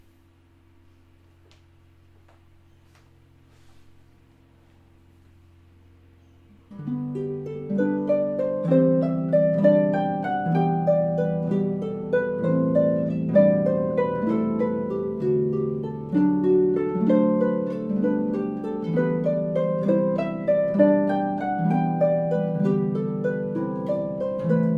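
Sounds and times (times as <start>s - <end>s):
harp playing: 6.0s - 24.7s.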